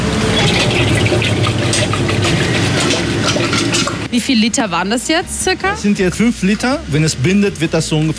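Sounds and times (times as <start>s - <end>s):
ice cream mix poured into ice machine: 0.1s - 4.1s
speech: 4.1s - 8.1s.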